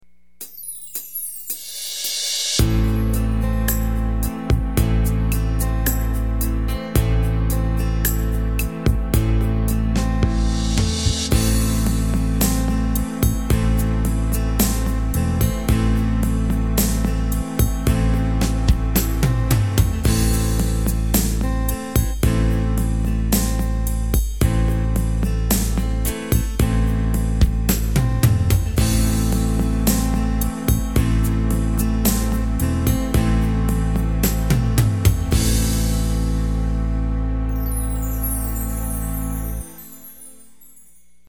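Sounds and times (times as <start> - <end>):
slow techno music: 1.6 - 40.4.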